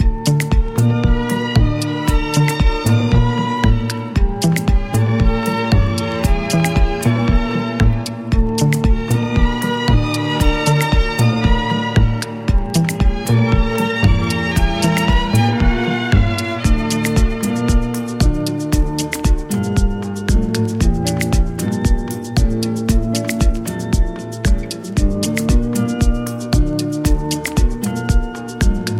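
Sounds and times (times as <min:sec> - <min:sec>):
violin: 0:00.0 - 0:28.9.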